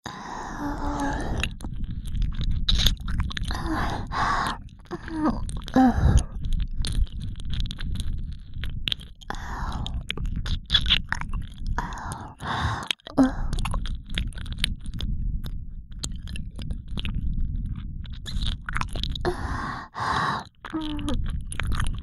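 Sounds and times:
right ear licking sounds with ear covering: 0:00.2 - 0:22.0.

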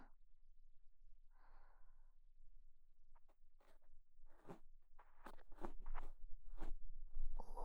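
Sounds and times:
ear cleaning of the right ear with a bamboo ear pick: 0:03.2 - 0:06.8.

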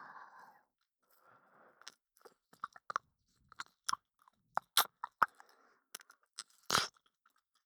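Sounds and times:
ear licking: 0:02.5 - 0:07.0.

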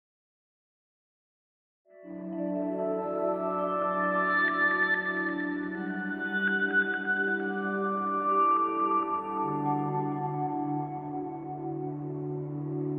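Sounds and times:
jingle: 0:02.0 - 0:12.8.

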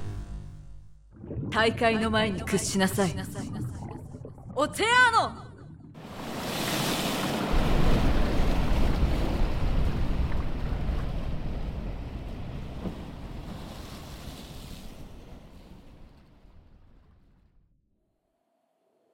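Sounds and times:
speech: 0:01.6 - 0:03.8, 0:04.6 - 0:05.4
magical wave of water flooding and washing enemies away: 0:06.0 - 0:15.2.

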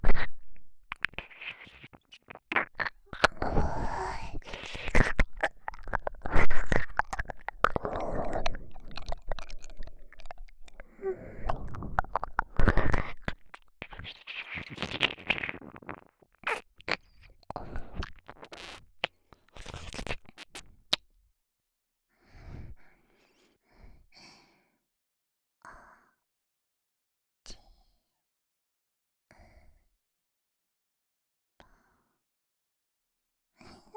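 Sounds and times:
ASMR ear licking: 0:00.0 - 0:21.0.

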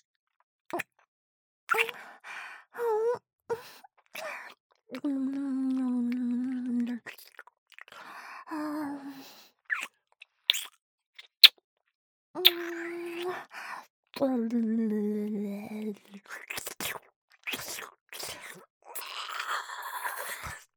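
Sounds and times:
oral sex sounds: 0:01.7 - 0:02.0, 0:02.8 - 0:09.9, 0:12.4 - 0:20.7.

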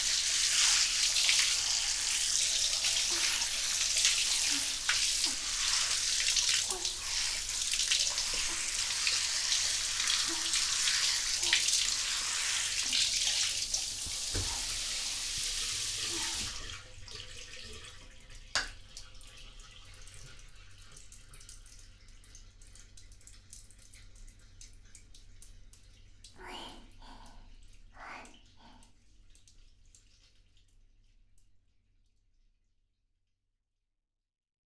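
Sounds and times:
shampooing hair: 0:00.0 - 0:16.7.

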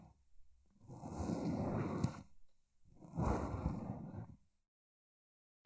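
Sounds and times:
writing brush and paintbrush tickling the ears: 0:00.0 - 0:04.4.

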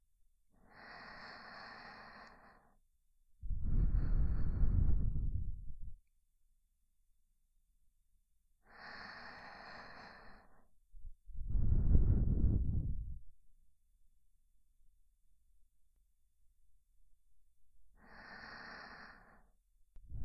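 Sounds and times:
sleeping breath loop on left channel: 0:00.6 - 0:02.8, 0:03.4 - 0:06.0, 0:08.7 - 0:13.3, 0:18.0 - 0:20.2.

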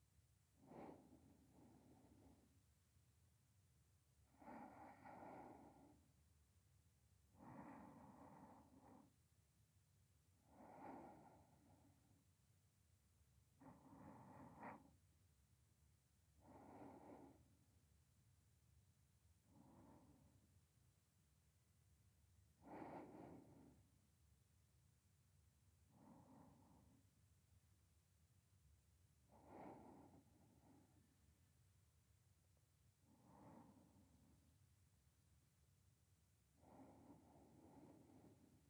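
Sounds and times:
sleeping breath voice beside the listener: 0:00.6 - 0:02.6, 0:04.3 - 0:06.1, 0:07.3 - 0:09.2, 0:10.4 - 0:12.2, 0:13.6 - 0:14.9, 0:16.4 - 0:17.6, 0:19.4 - 0:20.4, 0:22.6 - 0:23.9, 0:25.9 - 0:27.0, 0:29.3 - 0:31.1, 0:33.0 - 0:34.5, 0:36.6 - 0:38.6.

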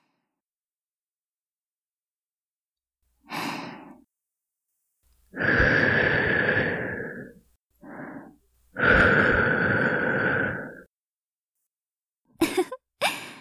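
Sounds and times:
gentle breathy blowing into the listener's ear, ASMR: 0:05.3 - 0:10.8.

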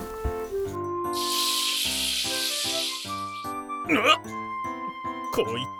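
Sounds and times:
baby urinating during diaper change: 0:00.1 - 0:03.6
speech: 0:03.9 - 0:04.3, 0:05.4 - 0:05.7.

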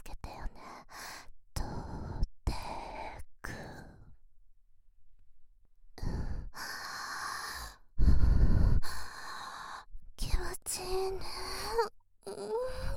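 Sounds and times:
woman's slow breathy inhales and exhales: 0:00.8 - 0:04.2, 0:06.0 - 0:10.0, 0:11.2 - 0:12.9.

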